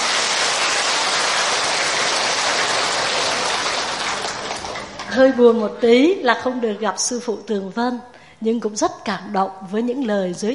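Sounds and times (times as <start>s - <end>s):
audience applause: 0.0s - 5.2s
speech: 5.1s - 10.5s.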